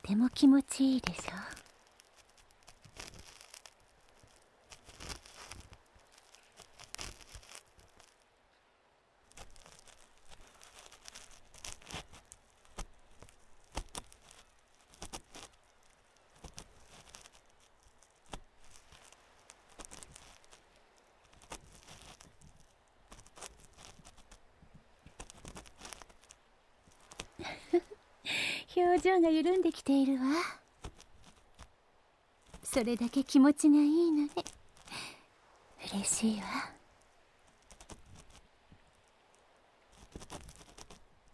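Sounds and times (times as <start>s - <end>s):
speech: 0.1s - 1.6s, 29.0s - 30.6s, 32.8s - 34.5s, 36.0s - 36.8s
ear cleaning with an ear pick: 0.3s - 8.2s, 9.3s - 24.5s, 25.1s - 28.0s, 30.8s - 31.7s, 37.6s - 38.4s, 39.9s - 41.1s.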